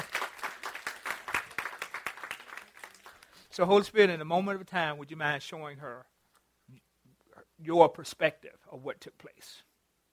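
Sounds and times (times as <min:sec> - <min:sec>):
hand clapping applause: 0:00.0 - 0:03.5
speech: 0:03.6 - 0:06.1, 0:07.6 - 0:09.7.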